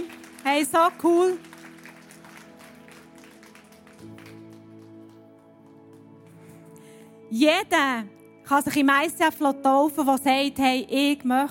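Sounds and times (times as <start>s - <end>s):
audience applause for baptism candidates: 0.0s - 5.9s
speech: 0.4s - 1.5s, 7.3s - 11.4s.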